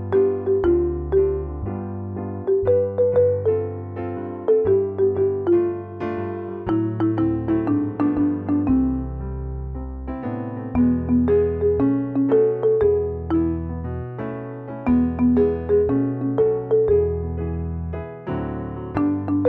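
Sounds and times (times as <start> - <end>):
guide melody: 0.0 - 9.6, 10.8 - 17.6, 18.9 - 19.4.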